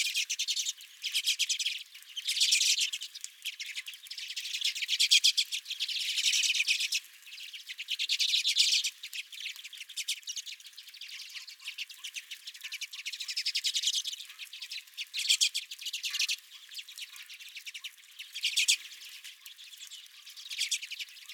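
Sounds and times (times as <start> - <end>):
redpolls calling: 0.0 - 21.3.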